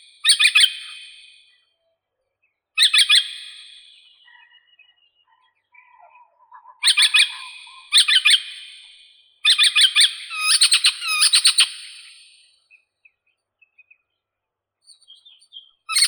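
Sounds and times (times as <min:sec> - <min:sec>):
European robin Erithacus rubecula: 0:00.0 - 0:01.8, 0:02.5 - 0:16.0
nature sounds: 0:00.0 - 0:16.0.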